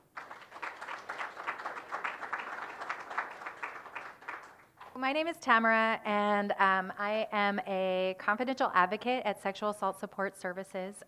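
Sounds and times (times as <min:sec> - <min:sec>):
audience applause for speakers: 0:00.0 - 0:04.7
speech: 0:05.0 - 0:11.0.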